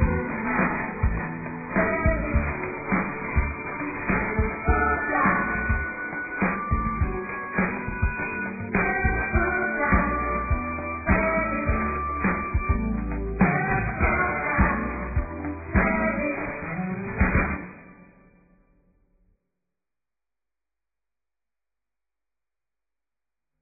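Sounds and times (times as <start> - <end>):
birthday song: 0.0 - 17.7.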